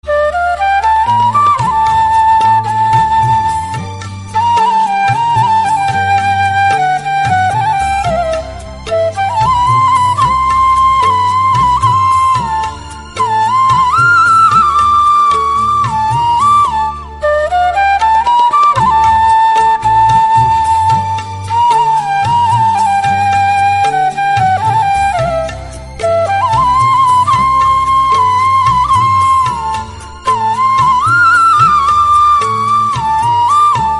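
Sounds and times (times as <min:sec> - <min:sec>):
flute: 0:00.0 - 0:33.9.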